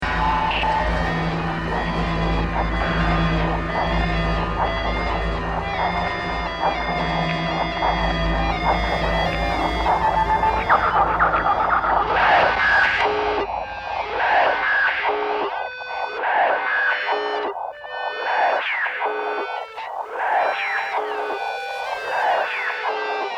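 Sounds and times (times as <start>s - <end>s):
emergency beacon: 0.0s - 16.2s, 17.0s - 23.2s.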